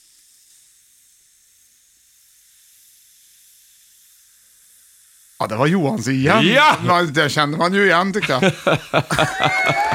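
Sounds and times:
effervescent vitamin C tablet fizzing: 0.0 - 8.4
speech: 5.4 - 9.9
laughter: 6.2 - 7.2, 8.1 - 9.9.

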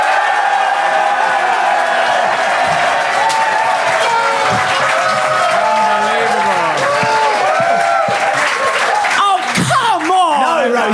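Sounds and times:
audience applause: 0.0 - 10.9
crowd cheering and shouting: 0.0 - 10.9.

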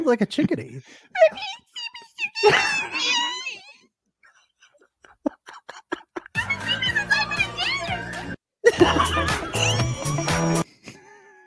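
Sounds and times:
pig squealing: 2.4 - 3.8
laughter: 4.6 - 7.9, 8.6 - 11.0.

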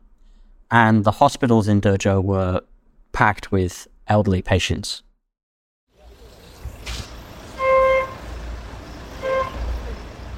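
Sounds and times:
speech: 0.7 - 5.1
street traffic outside a hospital: 6.0 - 10.3
car horn honks: 7.5 - 10.0.

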